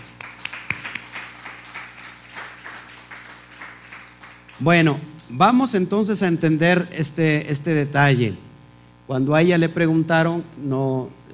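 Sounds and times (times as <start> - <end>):
audience applause: 0.0 - 4.9
speech: 4.6 - 8.4, 9.1 - 11.2.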